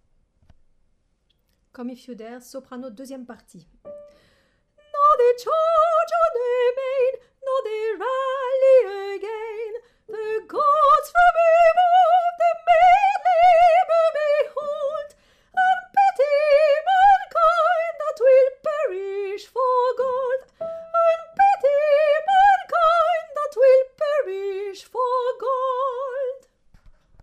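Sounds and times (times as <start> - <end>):
soprano singing: 4.8 - 26.5.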